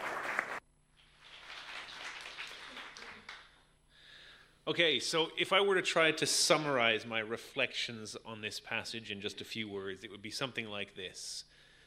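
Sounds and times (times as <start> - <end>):
soft audience applause welcoming a speaker: 0.0 - 3.6
speech: 4.7 - 11.6.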